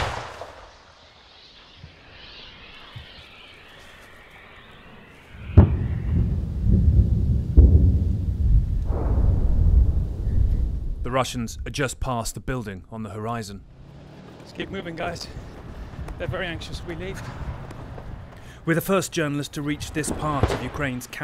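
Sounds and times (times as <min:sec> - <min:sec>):
gunfire in the Ukrainian counteroffensive near Orikhiv: 0:00.0 - 0:00.9, 0:05.4 - 0:11.2, 0:19.7 - 0:21.2
low rolling rumble: 0:04.4 - 0:21.0
speech: 0:11.2 - 0:13.8, 0:14.5 - 0:15.5, 0:16.2 - 0:17.5, 0:18.6 - 0:21.2.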